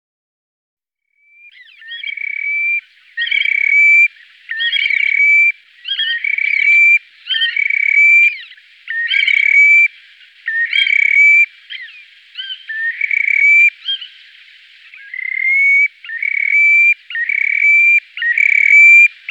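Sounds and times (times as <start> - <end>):
Terek sandpiper whistled calls: 1.4 - 19.2.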